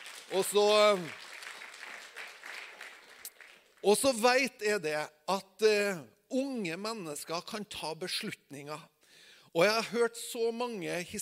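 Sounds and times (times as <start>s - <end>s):
audience applause: 0.0s - 3.8s
speech: 0.3s - 1.2s, 3.8s - 8.9s, 9.5s - 11.2s.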